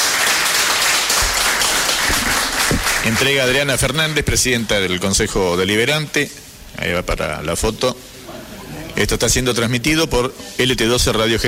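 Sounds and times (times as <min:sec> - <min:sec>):
audience applause at a presentation ceremony: 0:00.0 - 0:03.8
speech: 0:03.1 - 0:08.1, 0:09.0 - 0:11.4.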